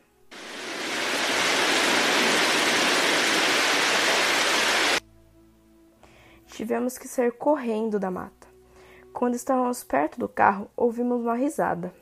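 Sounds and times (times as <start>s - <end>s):
rain: 0.3s - 5.0s
speech: 6.6s - 8.4s, 9.2s - 12.0s.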